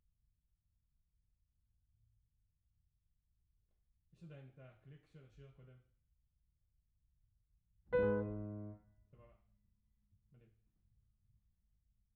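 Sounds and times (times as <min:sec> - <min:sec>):
piano: 0:07.9 - 0:09.0.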